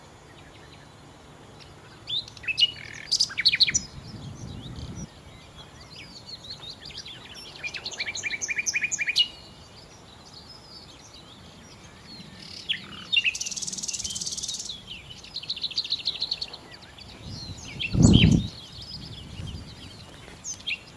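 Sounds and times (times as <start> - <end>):
Common nightingale song: 0.0 - 20.9
low rumbling noise: 16.6 - 20.0.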